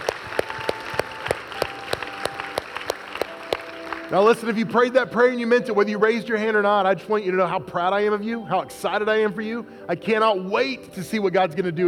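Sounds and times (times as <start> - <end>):
audience applause: 0.0 - 4.6
speech: 4.1 - 11.8.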